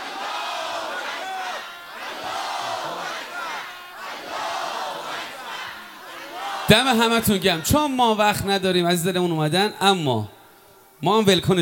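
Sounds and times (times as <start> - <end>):
large crowd at a religious gathering chanting Allahu Akbar in unison: 0.0 - 8.5
speech: 6.7 - 10.4, 11.0 - 11.6.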